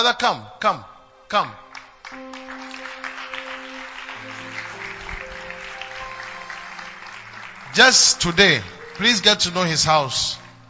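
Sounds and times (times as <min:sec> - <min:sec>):
speech: 0:00.0 - 0:02.2, 0:07.8 - 0:10.4
sustained organ or keyboard chords: 0:01.1 - 0:10.6
audience clapping: 0:01.7 - 0:10.6.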